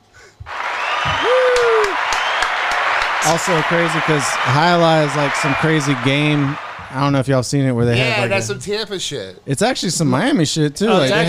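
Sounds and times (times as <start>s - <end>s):
applause sound effect: 0.4s - 7.4s
speech: 3.2s - 11.2s.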